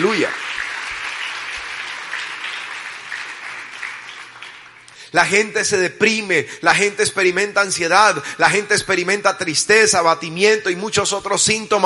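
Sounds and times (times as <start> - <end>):
speech: 0.0 - 0.4, 5.1 - 11.8
audience applause: 0.0 - 5.0.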